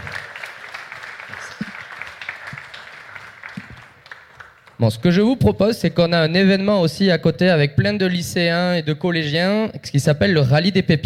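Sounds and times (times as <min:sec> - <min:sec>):
audience applause at a startup pitch competition: 0:00.0 - 0:04.8
speech: 0:04.8 - 0:11.0.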